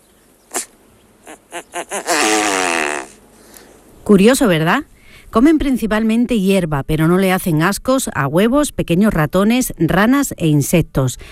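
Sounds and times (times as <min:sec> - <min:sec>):
male great bustard call: 0:00.0 - 0:03.7
speech: 0:01.6 - 0:02.4, 0:04.1 - 0:11.3.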